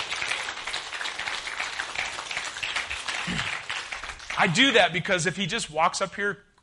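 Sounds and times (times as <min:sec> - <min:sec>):
audience applauding: 0:00.0 - 0:05.0
speech: 0:04.4 - 0:06.5.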